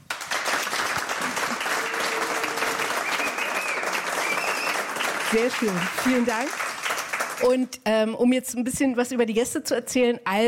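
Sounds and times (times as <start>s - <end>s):
audience applause: 0.0s - 7.5s
speech: 5.3s - 6.7s, 7.4s - 10.4s.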